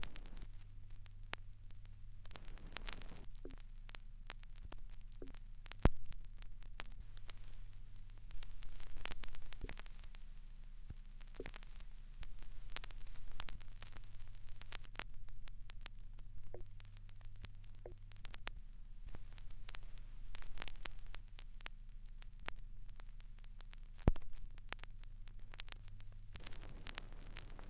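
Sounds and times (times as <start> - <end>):
vinyl crackles: 0.0 - 27.6.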